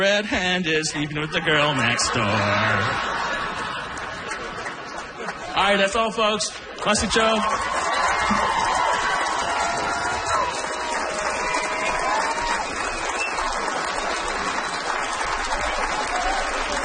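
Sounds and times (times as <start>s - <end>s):
speech: 0.0s - 3.4s, 5.6s - 8.4s
laughter: 0.8s - 5.7s
comedy club audience applause and cheering after a stand-up set: 1.2s - 5.8s, 6.6s - 16.8s
whoops and shouts from a comedy club audience: 7.4s - 13.6s, 15.7s - 16.8s.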